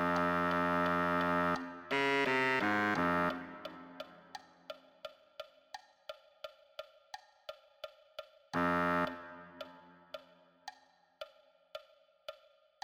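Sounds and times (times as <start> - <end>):
baritone saxophone: 0.0 - 4.2, 8.6 - 10.0.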